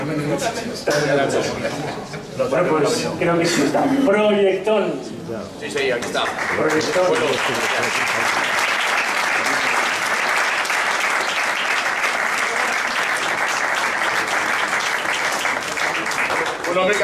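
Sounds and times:
speech: 0:00.1 - 0:08.4, 0:16.8 - 0:17.0
audience applause: 0:06.2 - 0:17.0.

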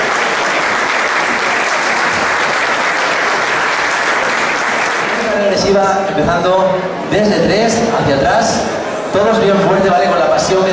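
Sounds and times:
audience applause: 0:00.0 - 0:05.7
speech: 0:05.6 - 0:10.7.

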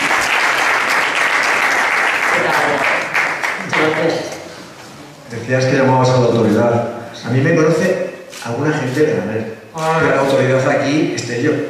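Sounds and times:
audience applause: 0:00.0 - 0:04.1
speech: 0:05.5 - 0:11.6.

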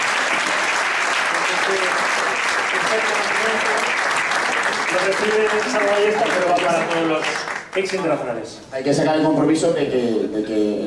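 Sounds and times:
audience applause: 0:00.0 - 0:08.2
speech: 0:01.7 - 0:04.1, 0:04.7 - 0:10.8.

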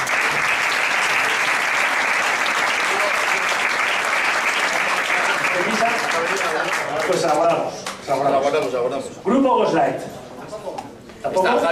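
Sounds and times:
audience applause: 0:00.0 - 0:07.5
speech: 0:07.1 - 0:10.2, 0:11.2 - 0:11.7.

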